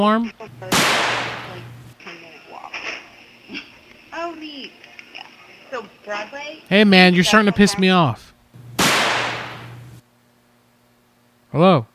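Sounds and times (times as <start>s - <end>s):
speech: 0.0s - 1.0s, 3.5s - 4.9s, 5.7s - 8.3s, 11.6s - 11.9s
firework going off indoors in a smoky room: 0.7s - 1.7s, 8.6s - 10.0s.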